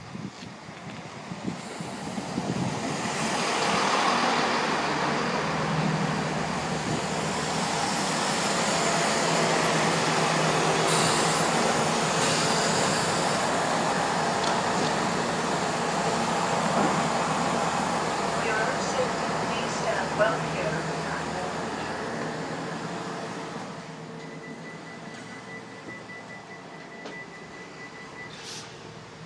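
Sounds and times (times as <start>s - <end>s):
person boarding a train at Cholsey station: 0.0s - 29.2s.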